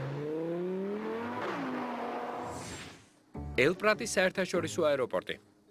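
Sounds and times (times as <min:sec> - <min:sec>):
small sports car engine roaring and revving: 0:00.0 - 0:02.5
speech: 0:03.6 - 0:05.5.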